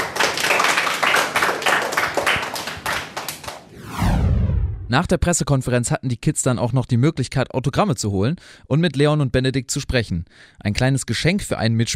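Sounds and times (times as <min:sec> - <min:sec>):
applause: 0:00.0 - 0:03.7
speech: 0:04.9 - 0:11.9.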